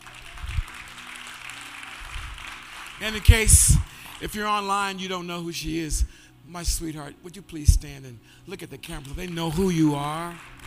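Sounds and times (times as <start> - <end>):
audience applause: 0.0 - 4.4, 10.2 - 10.6
speech: 3.0 - 10.6.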